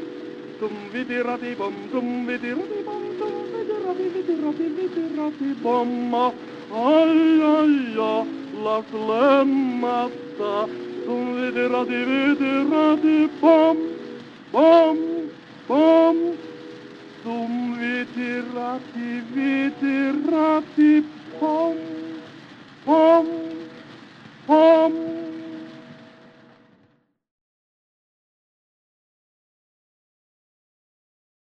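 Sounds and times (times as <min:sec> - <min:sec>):
gramophone playing: 0:00.0 - 0:23.9.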